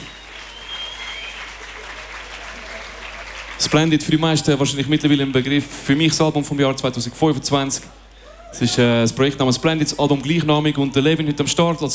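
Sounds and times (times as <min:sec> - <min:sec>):
large crowd applause: 0:00.0 - 0:04.8
speech: 0:03.6 - 0:11.9.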